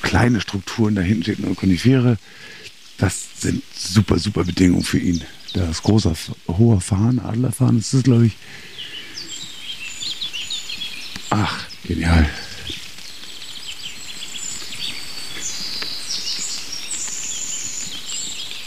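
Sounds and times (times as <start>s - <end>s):
rapid high warbling bird song: 0.0s - 18.6s
speech: 0.1s - 8.7s, 11.3s - 12.8s.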